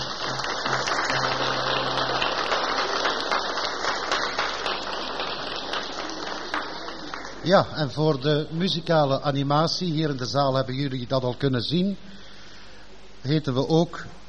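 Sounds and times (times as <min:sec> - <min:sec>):
audience applause: 0:00.0 - 0:08.2
speech: 0:07.4 - 0:12.2, 0:13.2 - 0:14.2.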